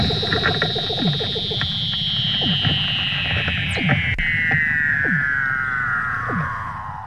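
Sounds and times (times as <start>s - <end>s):
Weddell seal long eerie whistle gliding downward: 0.7s - 7.0s.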